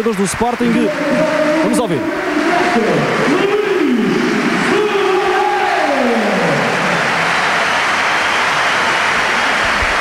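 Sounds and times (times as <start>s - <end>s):
speech: 0.0s - 4.3s
stadium crowd applauding: 0.0s - 9.9s.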